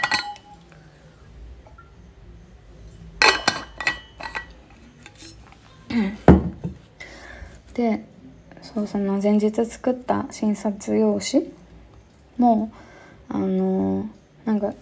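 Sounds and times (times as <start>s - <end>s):
glass clinking while drinking water: 0.0s - 0.6s, 3.2s - 5.6s
speech: 6.0s - 6.2s, 8.8s - 11.6s, 12.4s - 14.8s.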